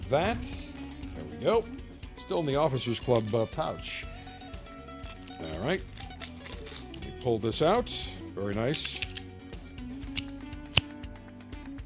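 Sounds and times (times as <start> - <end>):
speech: 0.1 - 0.6, 1.2 - 4.1, 5.4 - 6.0, 7.2 - 9.0
handling noises and soft rustles: 2.3 - 7.1
Alec Bradley Max cigar cut with a snip: 8.7 - 9.3, 10.0 - 11.0.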